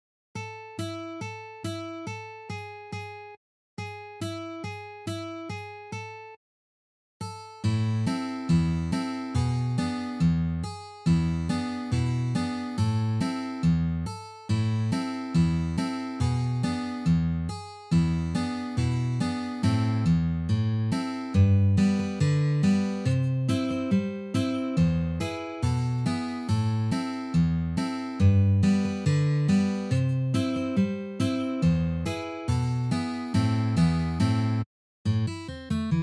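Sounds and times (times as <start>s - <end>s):
guitar playing: 7.6s - 36.0s.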